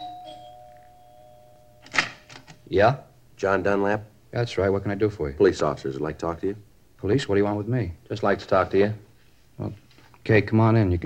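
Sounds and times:
doorbell ringing: 0:00.0 - 0:02.3
speech: 0:02.7 - 0:11.0.

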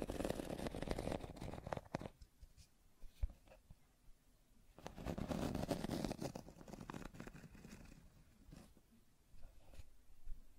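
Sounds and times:
scratching: 0:00.0 - 0:02.7, 0:04.8 - 0:08.8.

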